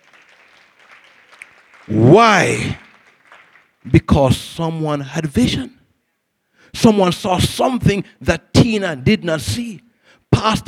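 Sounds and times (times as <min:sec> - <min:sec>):
crowd applauding: 0:00.0 - 0:04.0
speech: 0:01.8 - 0:02.8, 0:03.8 - 0:05.8, 0:06.7 - 0:10.6.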